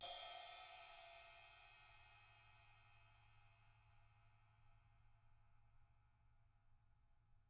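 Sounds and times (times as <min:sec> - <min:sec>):
18-inch crash cymbal hit on the tip: 0:00.0 - 0:02.2.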